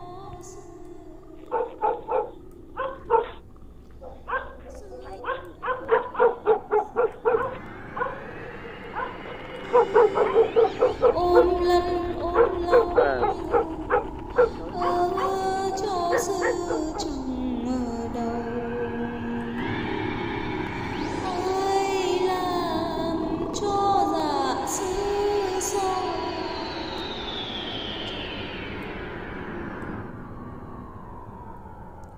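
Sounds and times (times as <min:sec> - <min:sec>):
person singing a lullaby: 0:00.0 - 0:02.1, 0:09.6 - 0:19.8, 0:21.1 - 0:27.1
dogs barking loudly in a village: 0:01.5 - 0:11.5, 0:12.4 - 0:15.4.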